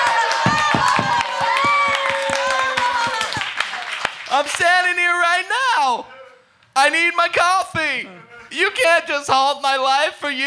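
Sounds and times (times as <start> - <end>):
thunderous applause from the audience: 0.0 - 5.5
audience laughter: 2.8 - 4.6
speech: 4.4 - 6.2, 6.8 - 10.4.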